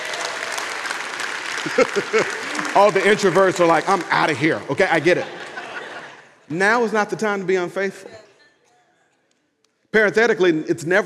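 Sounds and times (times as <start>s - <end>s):
church congregation clapping on cue: 0.0s - 6.9s
laughter: 1.4s - 8.4s
speech: 1.6s - 5.4s, 6.5s - 8.2s, 9.9s - 11.0s.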